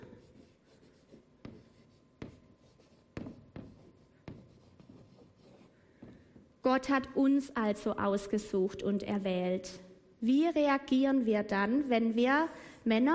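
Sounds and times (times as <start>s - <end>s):
handwriting with a pen on paper: 0.0s - 5.8s
speech: 6.7s - 13.1s.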